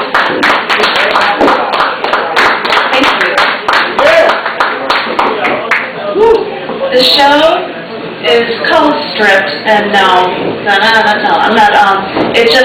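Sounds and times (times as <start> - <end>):
applause: 0.0 - 5.9
speech: 7.0 - 7.7, 8.4 - 12.6.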